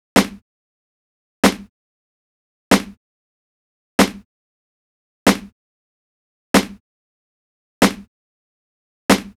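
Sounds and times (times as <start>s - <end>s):
snare drum: 0.2s - 0.4s, 1.4s - 1.7s, 2.7s - 3.0s, 4.0s - 4.2s, 5.3s - 5.5s, 6.6s - 6.8s, 7.8s - 8.1s, 9.1s - 9.3s.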